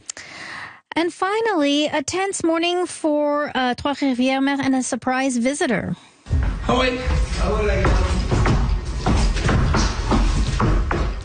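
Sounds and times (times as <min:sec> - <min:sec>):
speech: 0:01.0 - 0:06.1, 0:06.7 - 0:08.1
moose stomping on a house floor in Trois-Rivières: 0:06.3 - 0:11.2.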